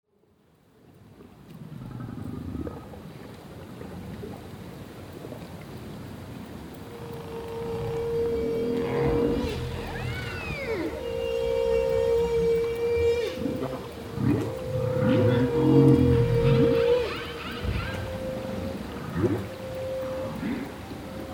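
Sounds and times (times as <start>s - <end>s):
humpback whale singing: 6.7s - 21.3s.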